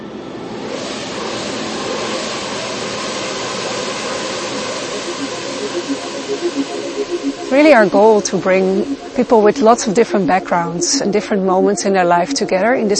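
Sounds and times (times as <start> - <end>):
swarm of 1,000 connected drones taking off: 0.3 - 12.9
speech: 7.6 - 12.9.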